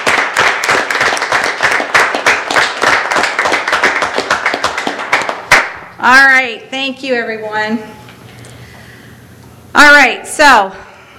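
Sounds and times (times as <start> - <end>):
audience round of applause: 0.0 - 5.8
speech: 6.0 - 8.0, 9.8 - 10.8.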